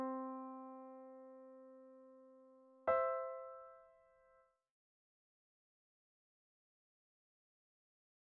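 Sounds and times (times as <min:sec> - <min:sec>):
piano: 0:00.0 - 0:04.6.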